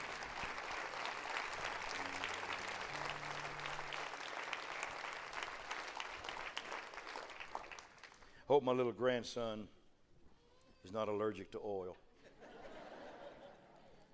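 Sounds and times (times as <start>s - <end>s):
audience clapping: 0.0s - 8.4s
speech: 8.5s - 9.8s, 10.8s - 12.0s
laughter: 12.2s - 14.1s.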